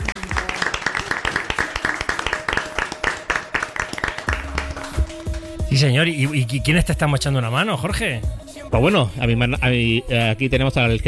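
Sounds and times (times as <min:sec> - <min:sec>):
applause: 0:00.0 - 0:05.7
speech: 0:05.7 - 0:11.0.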